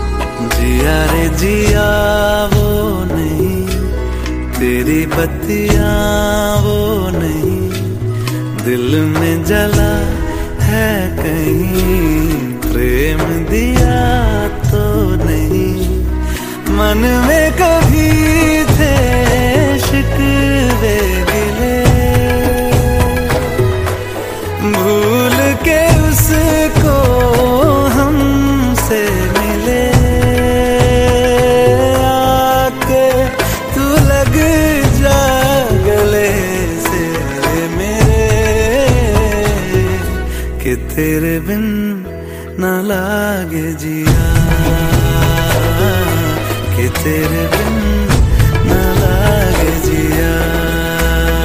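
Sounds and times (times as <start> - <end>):
sad song ringtone: 0.0 - 51.4.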